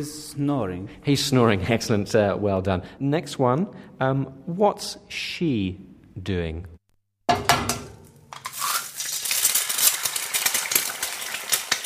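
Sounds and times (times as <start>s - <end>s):
speech: 0.0s - 6.7s, 7.3s - 7.7s
eggs frying in a pan: 7.9s - 11.8s.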